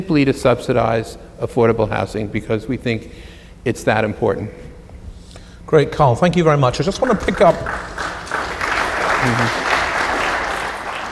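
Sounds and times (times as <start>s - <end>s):
speech: 0.0s - 4.7s, 5.7s - 8.1s, 9.2s - 9.6s
audience applause: 7.0s - 11.1s.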